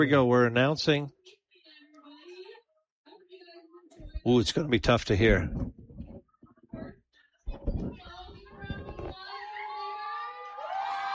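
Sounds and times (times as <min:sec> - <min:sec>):
speech: 0:00.0 - 0:01.2, 0:04.2 - 0:05.8
crowd applauding: 0:10.0 - 0:11.1.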